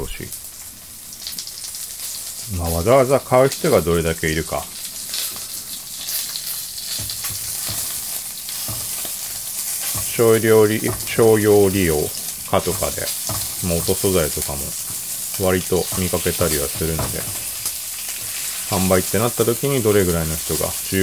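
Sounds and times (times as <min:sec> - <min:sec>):
pork belly sizzling in a frying pan: 0:00.0 - 0:21.0
speech: 0:02.5 - 0:04.8, 0:10.2 - 0:17.5, 0:18.7 - 0:21.0.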